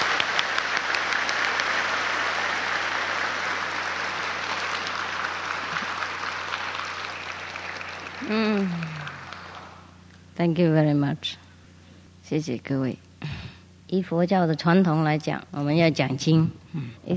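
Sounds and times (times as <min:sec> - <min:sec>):
large audience applause: 0:00.0 - 0:09.9
speech: 0:08.3 - 0:08.8, 0:10.4 - 0:11.4, 0:12.3 - 0:17.1.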